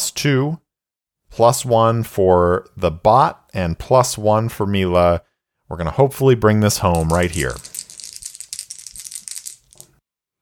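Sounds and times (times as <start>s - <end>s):
speech: 0.2s - 0.6s, 1.3s - 7.7s
dice rattling and clattering: 6.8s - 10.0s.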